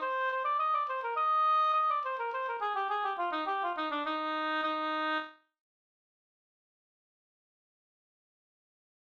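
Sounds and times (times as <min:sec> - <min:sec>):
slangpolska folk dance tune: 0:00.0 - 0:05.2.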